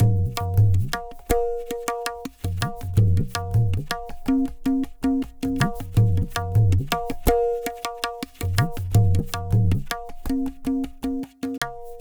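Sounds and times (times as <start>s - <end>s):
tabla: 0.0s - 12.0s.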